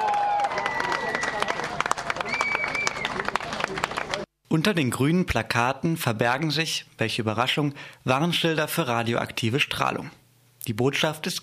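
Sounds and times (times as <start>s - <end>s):
loud applause from protesters: 0.0s - 4.3s
protesters cheering: 0.0s - 4.3s
protesters whistling: 0.3s - 1.5s, 2.2s - 3.2s
speech: 4.5s - 11.4s.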